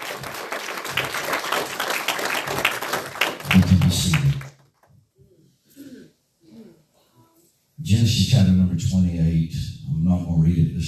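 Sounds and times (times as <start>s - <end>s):
audience hand clapping: 0.0s - 4.9s
speech: 8.4s - 10.8s.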